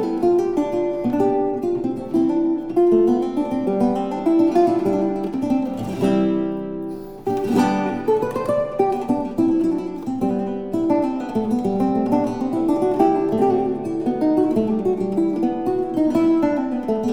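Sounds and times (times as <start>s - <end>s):
classical guitar piece in C: 0.0s - 17.1s.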